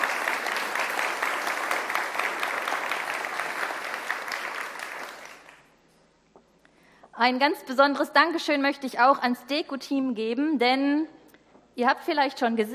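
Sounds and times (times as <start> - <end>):
audience applause: 0.0 - 5.7
speech: 7.2 - 11.2, 11.8 - 12.7.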